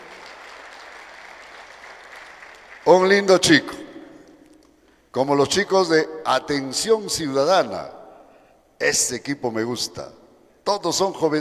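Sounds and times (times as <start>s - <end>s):
audience applause: 0.0s - 2.9s
speech: 2.8s - 3.8s, 5.2s - 8.0s, 8.8s - 11.3s.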